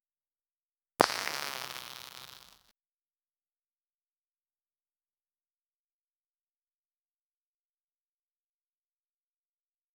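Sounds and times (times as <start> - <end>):
ultra short fart: 1.0 - 2.6.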